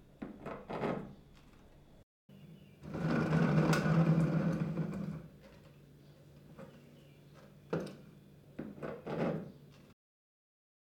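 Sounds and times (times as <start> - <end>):
chairs being pulled out in different ways: 2.8 - 5.3.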